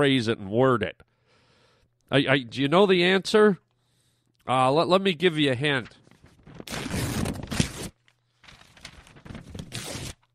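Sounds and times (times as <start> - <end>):
speech: 0.0 - 1.1, 2.1 - 3.6, 4.4 - 6.8
paper money being ripped: 6.2 - 10.3.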